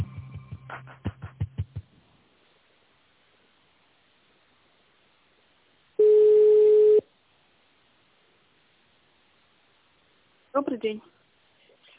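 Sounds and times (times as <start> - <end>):
telephone ringback tone while an office call is transferred: 6.0 - 7.0
speech: 10.6 - 11.2.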